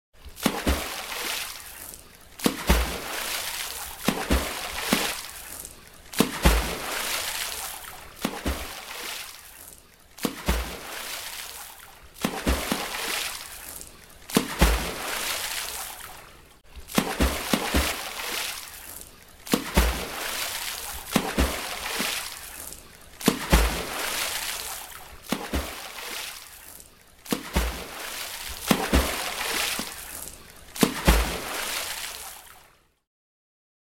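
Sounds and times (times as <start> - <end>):
athlete swimming butterfly stroke: 0.2 - 32.6.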